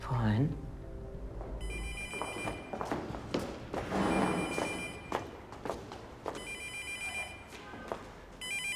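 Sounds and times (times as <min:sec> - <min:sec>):
speech: 0:00.1 - 0:00.7
telephone ringing: 0:01.6 - 0:02.8, 0:03.9 - 0:05.2, 0:06.4 - 0:07.5, 0:08.4 - 0:08.7.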